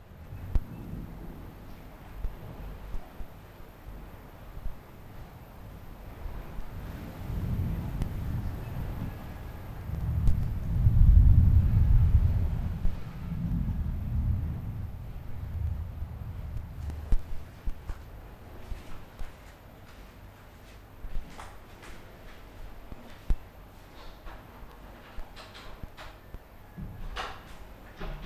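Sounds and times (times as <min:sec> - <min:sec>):
thunderstorm in Curacao: 0:00.0 - 0:18.9.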